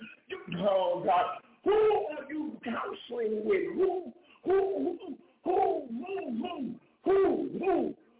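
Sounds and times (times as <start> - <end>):
speech: 0.6 - 1.9
man's voice imitating owl hoots: 3.8 - 8.0.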